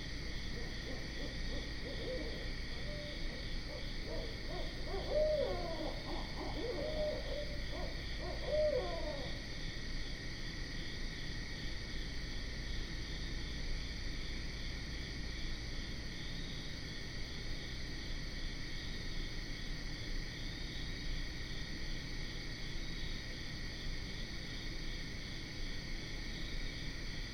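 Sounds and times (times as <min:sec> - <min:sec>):
high insect chorus: 0:00.0 - 0:27.3
barred owl hooting: 0:00.2 - 0:09.4.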